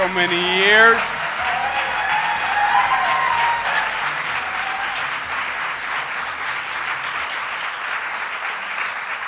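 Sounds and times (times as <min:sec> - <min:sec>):
crowd applauding loudly: 0:00.0 - 0:09.2
speech: 0:00.1 - 0:01.2
whoops and cheers: 0:01.1 - 0:05.2.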